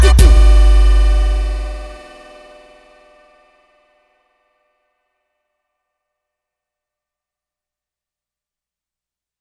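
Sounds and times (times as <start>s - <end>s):
electro funk music: 0.0s - 3.0s.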